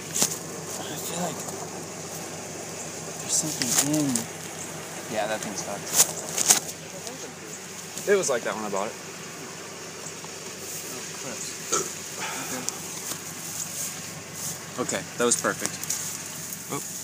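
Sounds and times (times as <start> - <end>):
driveshaft rattle on a 2000 Taco 2.7L: 0.0 - 16.7.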